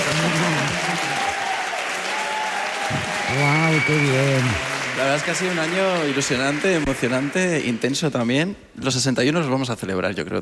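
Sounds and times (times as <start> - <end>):
people shouting and cheering: 0.0 - 8.1
live studio audience applauding: 0.0 - 8.5
speech: 3.3 - 10.4.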